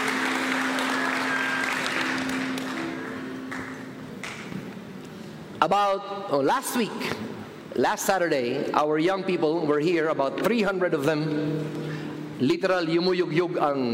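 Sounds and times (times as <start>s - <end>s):
audience cheering with whoops: 0.0s - 3.6s
audience applause: 0.0s - 4.5s
speech: 5.6s - 13.9s.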